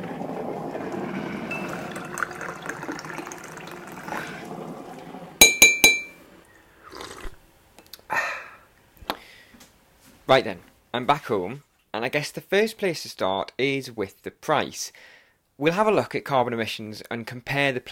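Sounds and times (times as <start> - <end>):
liquid pouring: 0.0 - 6.2, 6.9 - 7.4
spoon clinking against a cup: 5.4 - 6.2
speech: 10.3 - 17.9.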